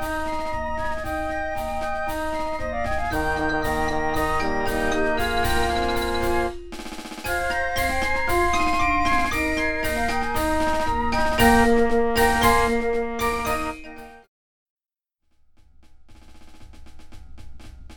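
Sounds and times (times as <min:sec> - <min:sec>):
fanfares: 0:00.0 - 0:14.1
flutes: 0:00.0 - 0:14.3.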